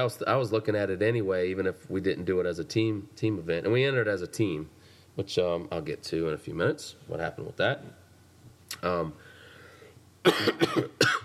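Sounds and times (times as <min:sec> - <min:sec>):
speech: 0:00.0 - 0:08.0, 0:08.7 - 0:09.3, 0:10.2 - 0:11.2
person coughing: 0:10.2 - 0:11.2.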